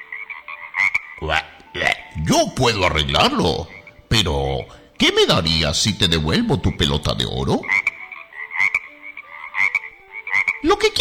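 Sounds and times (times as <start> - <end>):
frog croaking: 0.0 - 2.2, 2.8 - 4.7, 6.0 - 10.9
speech: 1.2 - 7.9.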